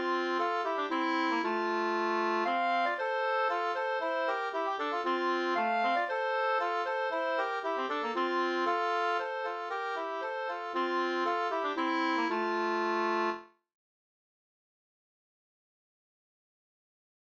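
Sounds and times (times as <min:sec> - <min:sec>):
polska dance tune: 0:00.0 - 0:13.4.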